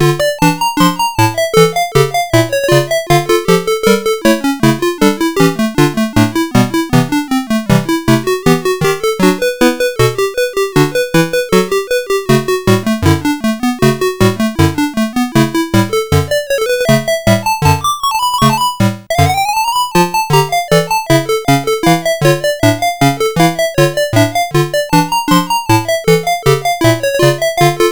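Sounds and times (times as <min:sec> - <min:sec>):
chiptune game level music on sid CSG8580R5: 0:00.0 - 0:27.9.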